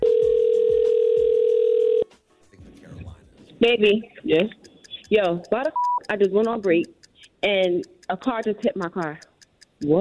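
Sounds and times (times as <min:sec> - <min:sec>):
phone line ringing tone: 0:00.0 - 0:02.0
faint low noise: 0:02.0 - 0:09.9
speech: 0:03.6 - 0:09.9.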